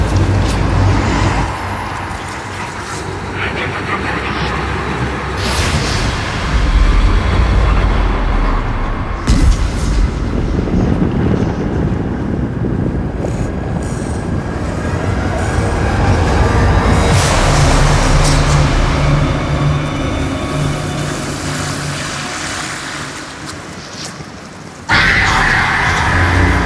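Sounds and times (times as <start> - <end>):
dark cinematic sound effects: 0.0 - 26.6.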